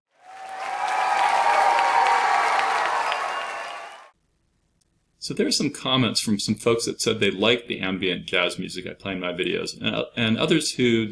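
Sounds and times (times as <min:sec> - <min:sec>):
audience applause: 0:00.1 - 0:04.1
speech: 0:05.2 - 0:11.0.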